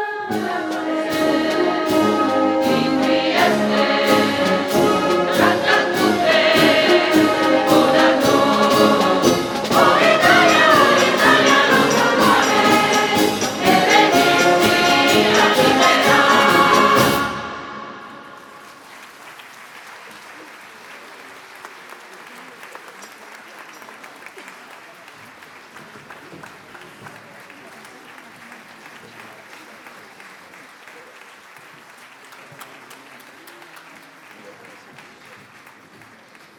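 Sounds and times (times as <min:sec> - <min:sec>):
philharmonic band playing: 0:00.1 - 0:18.9.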